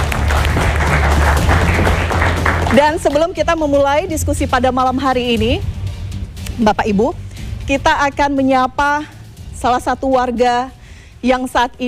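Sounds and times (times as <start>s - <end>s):
audience applause from students at an evening panel discussion: 0.0s - 2.9s
speech: 2.7s - 5.7s, 6.6s - 11.8s.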